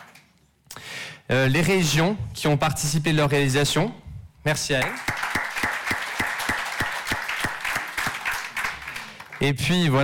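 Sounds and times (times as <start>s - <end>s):
speech: 1.3s - 5.1s, 9.4s - 10.0s
audience applause: 4.9s - 9.6s.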